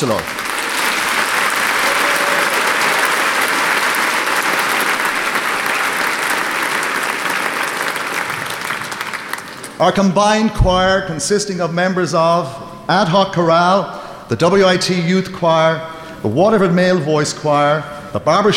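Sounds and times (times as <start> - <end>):
speech: 0.0 - 0.4, 9.8 - 18.5
audience applause for an orchestra: 0.0 - 9.8.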